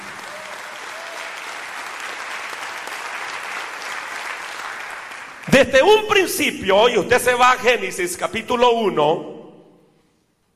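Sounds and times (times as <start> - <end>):
audience applauding: 0.0 - 5.7
speech: 5.5 - 9.3.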